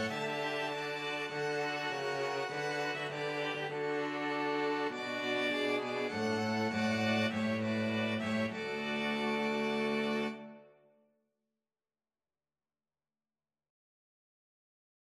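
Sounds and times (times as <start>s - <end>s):
string quartet playing: 0.0s - 10.7s.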